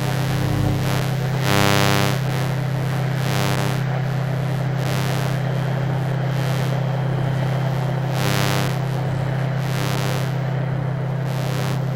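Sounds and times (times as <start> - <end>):
electromagnetic hum from a modem, server, gas boiler and light fittings: 0.0 - 11.9.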